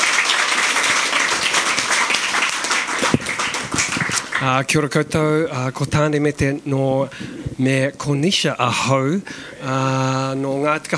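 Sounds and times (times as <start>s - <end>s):
crowd applauding: 0.0s - 4.7s
speech: 4.4s - 10.9s.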